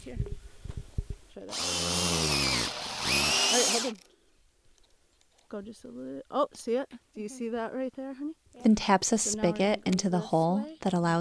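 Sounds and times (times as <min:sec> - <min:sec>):
speech: 0:00.0 - 0:00.5, 0:01.4 - 0:01.9, 0:03.8 - 0:04.1, 0:05.5 - 0:11.1
drilling a small hole into tree: 0:01.5 - 0:05.5.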